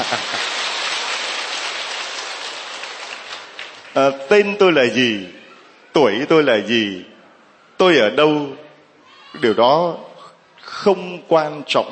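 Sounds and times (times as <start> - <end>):
crowd applause: 0.0 - 4.0
speech: 4.0 - 5.4, 6.0 - 7.1, 7.8 - 8.6, 9.4 - 11.9.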